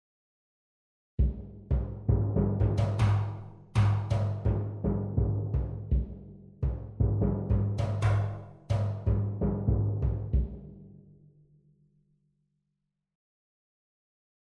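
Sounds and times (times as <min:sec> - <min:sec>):
ethnic drums: 0:01.2 - 0:10.8.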